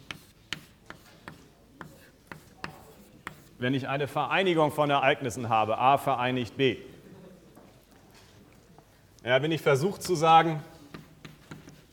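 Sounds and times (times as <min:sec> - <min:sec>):
writing on a board during a German lecture: 0:00.0 - 0:03.6, 0:10.8 - 0:11.9
soft noise: 0:00.0 - 0:11.9
speech: 0:03.6 - 0:06.9, 0:09.2 - 0:10.7.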